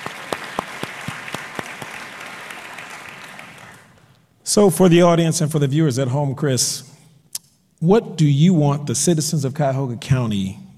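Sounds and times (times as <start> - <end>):
audience applause: 0.0 - 4.0
speech: 4.5 - 6.9, 7.8 - 10.6.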